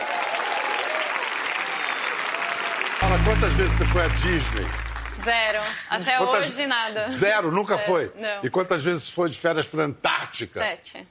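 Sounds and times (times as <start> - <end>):
audience clapping: 0.0 - 5.7
speech: 3.2 - 11.0.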